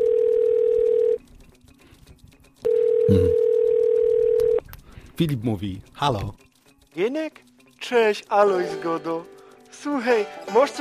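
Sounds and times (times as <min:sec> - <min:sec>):
telephone dial tone while a phone call is being placed: 0:00.0 - 0:01.2, 0:02.7 - 0:04.6
speech: 0:05.2 - 0:06.4, 0:07.0 - 0:10.7.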